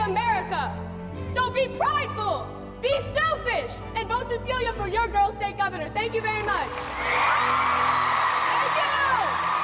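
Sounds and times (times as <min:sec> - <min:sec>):
speech: 0:00.1 - 0:08.1
audience clapping and cheering in a standing ovation after a campaign speech: 0:06.4 - 0:09.6
whooping shout from the audience: 0:07.0 - 0:09.6.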